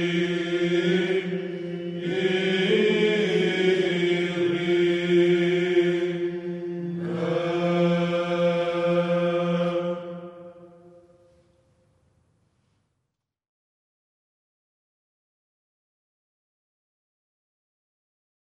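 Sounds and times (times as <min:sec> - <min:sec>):
choir singing: 0:00.0 - 0:11.4.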